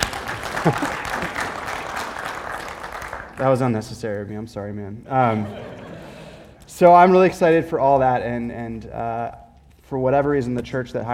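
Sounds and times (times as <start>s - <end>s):
audience applause: 0.0s - 3.6s
laughter: 0.3s - 1.7s, 5.2s - 6.6s
speech: 0.6s - 1.0s, 3.4s - 5.8s, 6.8s - 11.1s.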